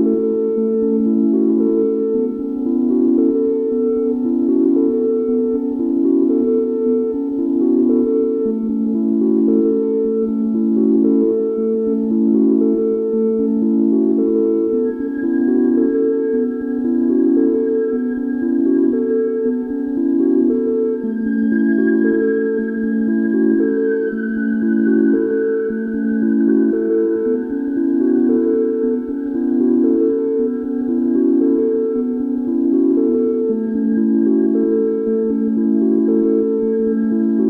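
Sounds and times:
four synthesizers: 0:00.0 - 0:37.4.

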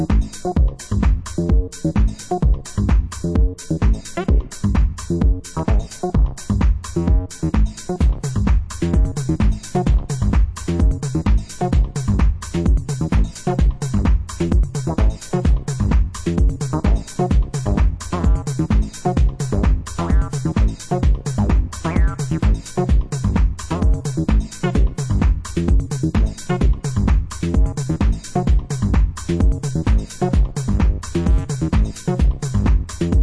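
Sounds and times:
bass funk music: 0:00.0 - 0:33.2.

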